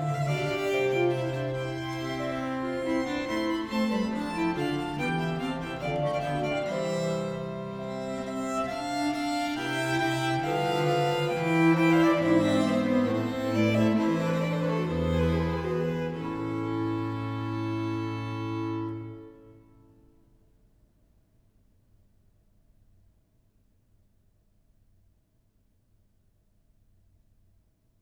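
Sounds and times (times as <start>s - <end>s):
viol consort playing an air in A minor: 0.0s - 19.6s.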